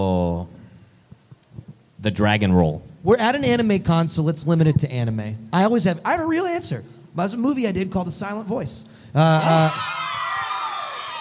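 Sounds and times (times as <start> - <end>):
speech: 2.0 - 10.0
person whooping: 9.2 - 11.2
crowd clapping and shouting: 9.8 - 11.2.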